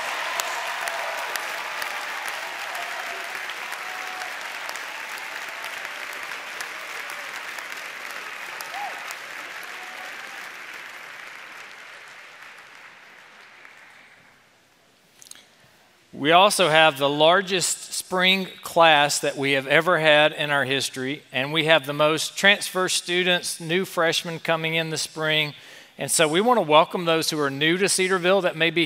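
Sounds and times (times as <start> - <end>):
audience applause: 0.0 - 14.4
speech: 16.2 - 28.8.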